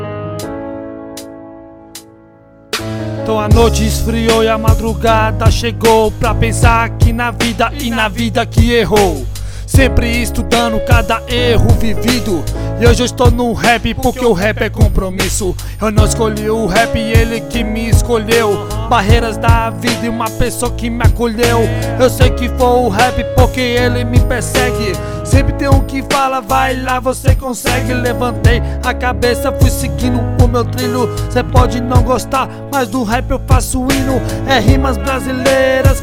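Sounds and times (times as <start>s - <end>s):
rap music: 2.8s - 36.0s.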